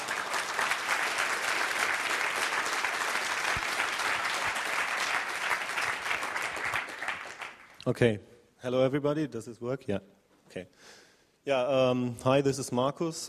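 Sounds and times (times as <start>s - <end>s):
audience applause welcoming speakers to the stage at a talk: 0.0s - 7.8s
speech: 7.9s - 13.2s.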